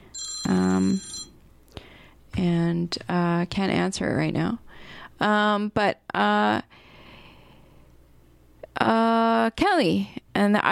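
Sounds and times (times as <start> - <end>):
telephone ringing: 0.1 - 1.4
speech: 2.4 - 6.8, 8.8 - 10.6.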